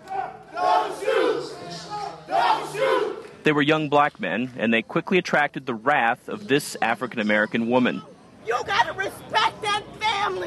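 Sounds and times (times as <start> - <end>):
crowd chanting a protest slogan: 0.0 - 3.4
speech: 3.4 - 10.4.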